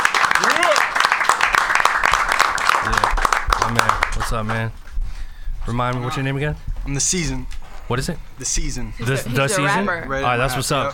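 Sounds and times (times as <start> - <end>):
audience applause: 0.0 - 4.6
speech: 4.3 - 4.8, 5.6 - 10.9.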